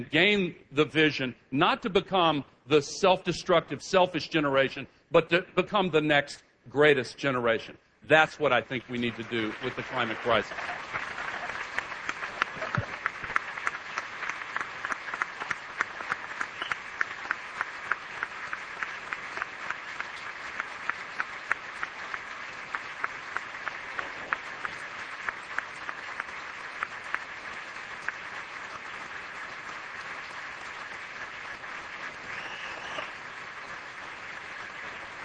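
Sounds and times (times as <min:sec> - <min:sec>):
speech: 0:00.0 - 0:11.2
audience applause: 0:08.6 - 0:35.2.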